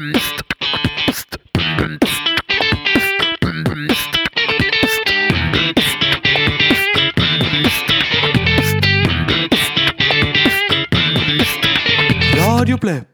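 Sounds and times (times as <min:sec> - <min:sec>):
funk music: 0:00.2 - 0:13.1.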